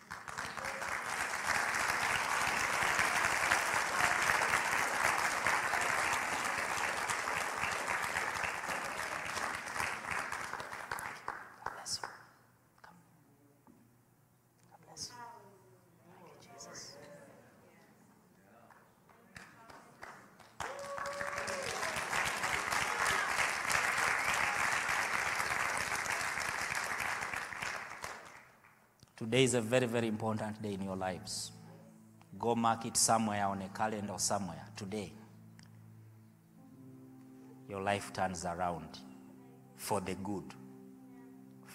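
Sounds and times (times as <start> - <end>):
audience clapping: 0.0 - 12.4, 18.7 - 28.9
speech: 29.2 - 31.6, 32.4 - 35.2, 37.9 - 39.1, 39.8 - 40.6.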